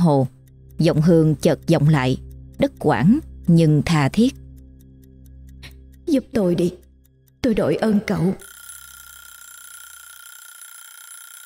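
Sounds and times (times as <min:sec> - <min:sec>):
speech: 0:00.0 - 0:04.4, 0:06.1 - 0:06.8, 0:07.4 - 0:08.5
alarm clock bell ringing: 0:08.4 - 0:11.4.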